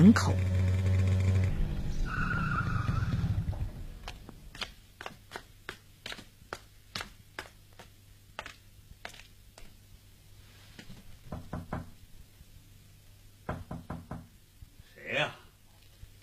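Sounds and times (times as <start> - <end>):
motorcycle speeding through streets at night: 0.0 - 4.4.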